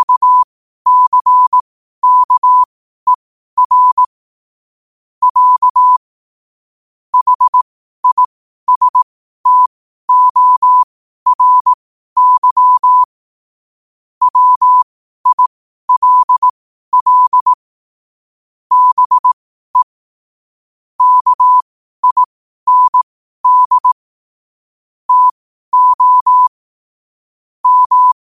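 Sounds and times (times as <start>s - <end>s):
morse code at 5 wpm: 0.0s - 4.1s, 5.2s - 6.0s, 7.2s - 13.1s, 14.2s - 17.6s, 18.7s - 20.0s, 21.0s - 24.0s, 25.1s - 26.6s, 27.6s - 28.2s.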